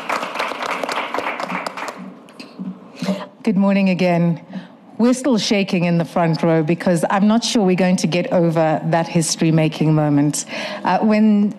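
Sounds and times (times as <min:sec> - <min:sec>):
audience applause: 0:00.0 - 0:02.2
speech: 0:03.5 - 0:11.5.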